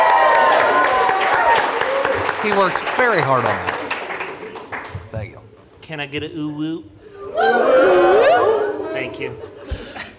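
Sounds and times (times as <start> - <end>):
audience applause: 0.0 - 5.2
speech: 2.4 - 3.8, 5.9 - 9.5.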